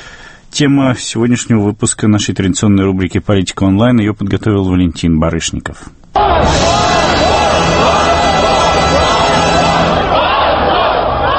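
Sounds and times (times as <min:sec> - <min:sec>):
speech: 0:00.6 - 0:06.9
dense crowd of demonstrators shouting and chanting: 0:06.2 - 0:11.3
national anthem playing: 0:06.2 - 0:11.3.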